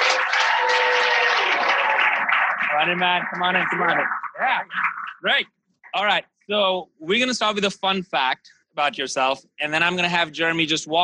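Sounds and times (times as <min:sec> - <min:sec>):
audience applause: 0:00.0 - 0:05.2
speech: 0:02.8 - 0:11.0.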